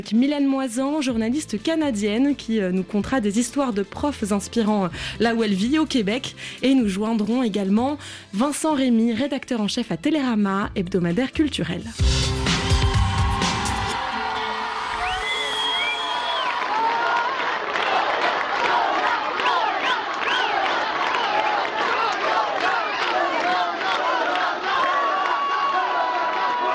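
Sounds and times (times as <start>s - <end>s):
speech: 0.0s - 12.4s
crowd cheering and shouting for a retiring sports teacher: 12.0s - 26.7s.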